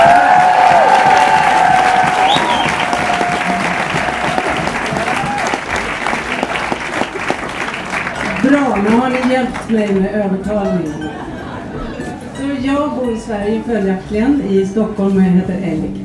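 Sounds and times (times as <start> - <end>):
audience applause: 0.0 - 10.0
speech: 9.7 - 11.2, 12.6 - 16.0.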